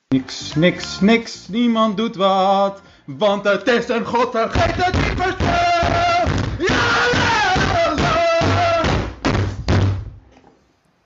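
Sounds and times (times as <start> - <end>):
speech: 0.2 - 6.2
fist banging on a table: 4.6 - 10.1.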